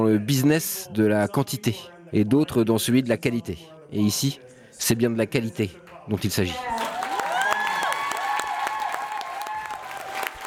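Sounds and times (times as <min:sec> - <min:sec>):
speech: 0:00.0 - 0:06.8
crowd applauding in a convention hall: 0:05.9 - 0:10.4
faint whistles and cheers: 0:06.7 - 0:10.4.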